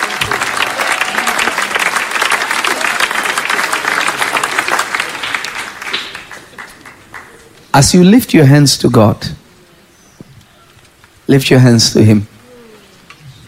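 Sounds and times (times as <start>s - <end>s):
audience clapping hands: 0.0s - 7.7s
speech: 7.8s - 9.4s, 11.3s - 12.3s.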